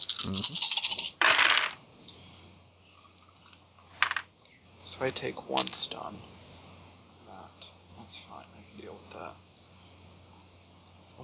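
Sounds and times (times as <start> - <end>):
handful of dice clattering across a hard surface: 0.0 - 1.8, 4.0 - 4.3
speech: 0.2 - 0.7, 5.0 - 6.4.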